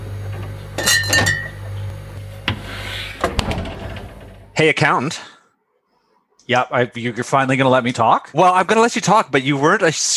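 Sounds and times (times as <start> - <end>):
beer bottles clinking in fridge: 0.7 - 1.8
speech: 4.6 - 5.3, 6.5 - 10.1.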